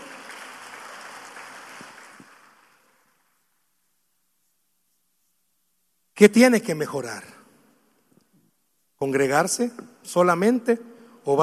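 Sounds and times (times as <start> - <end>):
audience applause: 0.0 - 3.3
speech: 6.2 - 7.4, 9.0 - 11.4.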